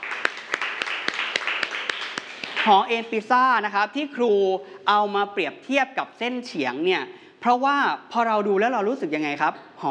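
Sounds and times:
students in a classroom clapping for a classmate: 0.0 - 3.0
speech: 2.6 - 9.8.

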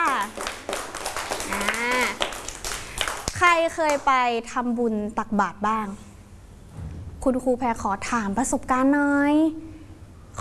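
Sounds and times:
children clapping for a classmate: 0.0 - 4.2
speech: 3.6 - 6.1, 7.2 - 9.6.

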